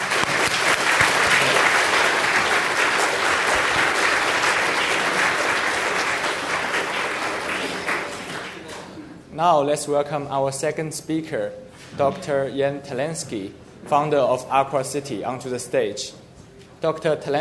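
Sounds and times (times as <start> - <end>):
auditorium audience applause: 0.0 - 8.9
speech: 9.4 - 16.2, 16.8 - 17.3.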